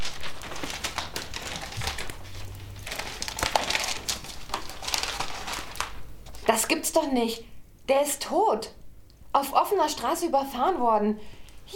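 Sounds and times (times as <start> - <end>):
newspaper passed over and rustled: 0.0 - 6.6
speech: 6.6 - 8.8, 9.4 - 11.7.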